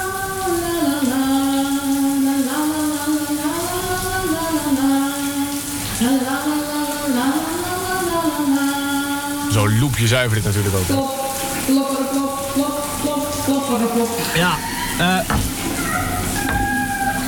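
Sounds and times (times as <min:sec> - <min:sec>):
shower water running: 0:00.0 - 0:17.2
speech: 0:09.9 - 0:15.5.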